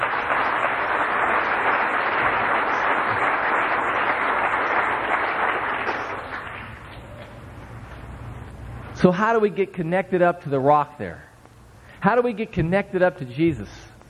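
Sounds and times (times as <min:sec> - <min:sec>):
audience clapping hands: 0:00.0 - 0:07.1
speech: 0:09.0 - 0:11.3, 0:12.0 - 0:13.8.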